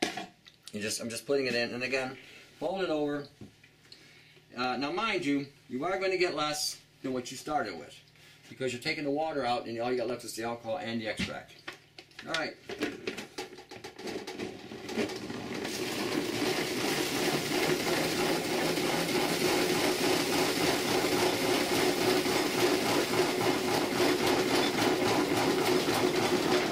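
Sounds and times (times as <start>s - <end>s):
speech: 0.7s - 3.5s, 4.5s - 11.6s, 12.2s - 12.9s
homemade centrifuge running: 14.0s - 26.6s.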